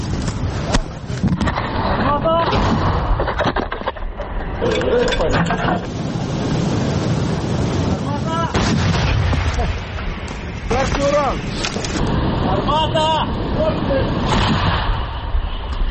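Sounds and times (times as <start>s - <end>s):
wind-like rumble: 0.0s - 15.8s
M777 howitzer firing: 8.5s - 12.0s.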